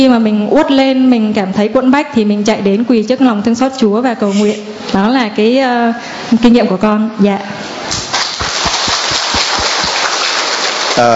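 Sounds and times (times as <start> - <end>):
speech: 0.0 - 8.0, 11.0 - 11.1
big round of applause: 8.0 - 11.1.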